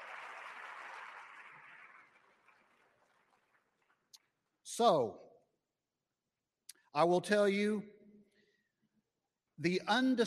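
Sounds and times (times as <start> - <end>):
audience round of applause: 0.0 - 4.1
speech: 4.8 - 5.2, 7.0 - 8.0, 9.6 - 10.2.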